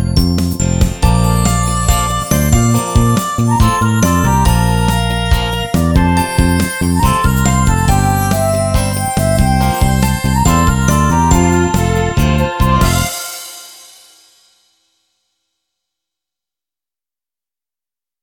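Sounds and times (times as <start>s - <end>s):
backing music: 0.0s - 14.1s.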